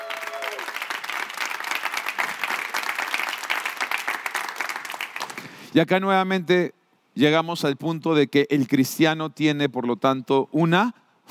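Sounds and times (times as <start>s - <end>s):
audience applause: 0.0s - 5.6s
speech: 5.7s - 11.0s.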